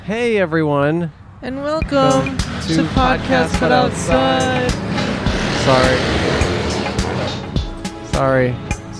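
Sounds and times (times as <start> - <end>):
speech: 0.1 - 4.9, 5.6 - 6.1, 8.2 - 8.7
loud motorcycle passing: 1.6 - 8.1.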